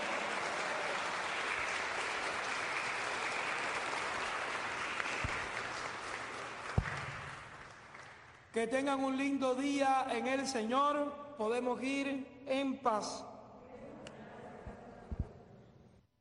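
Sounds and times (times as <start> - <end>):
audience applause: 0.0 - 8.4
speech: 8.6 - 13.3.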